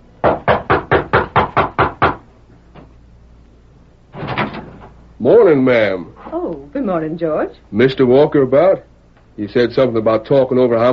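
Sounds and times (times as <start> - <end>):
knocking on a wooden door: 0.2 - 2.2
speech: 5.2 - 6.1, 6.8 - 10.9.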